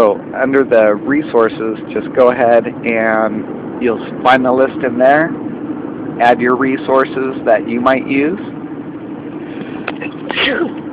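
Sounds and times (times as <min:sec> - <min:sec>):
low hum: 0:00.0 - 0:10.9
speech: 0:00.1 - 0:05.5, 0:06.2 - 0:08.6, 0:10.3 - 0:10.8
sneeze: 0:10.0 - 0:10.8.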